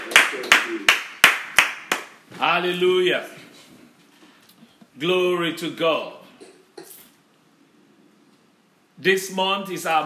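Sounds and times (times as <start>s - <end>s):
church congregation clapping in unison as a clap offering: 0.0s - 2.2s
speech: 2.4s - 3.4s, 5.0s - 6.2s, 9.0s - 10.0s.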